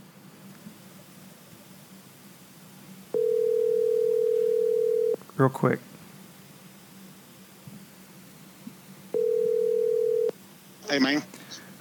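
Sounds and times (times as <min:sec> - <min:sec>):
telephone dial tone while calling: 0:03.2 - 0:05.2, 0:09.2 - 0:10.3
speech: 0:05.4 - 0:05.9.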